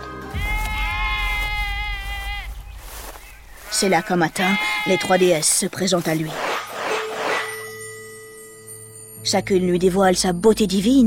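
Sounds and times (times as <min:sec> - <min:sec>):
sheep grazing on Mount Ida bleating: 0:00.3 - 0:06.3
steady low rumble: 0:00.4 - 0:04.8
speech: 0:03.8 - 0:06.5, 0:09.3 - 0:11.0.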